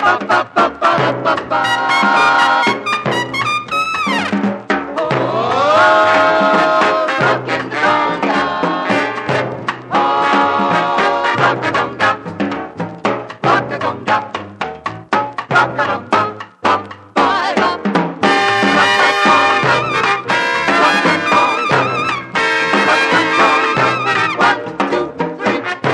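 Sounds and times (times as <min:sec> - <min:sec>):
conga playing rock rhythm: 0:00.0 - 0:25.9.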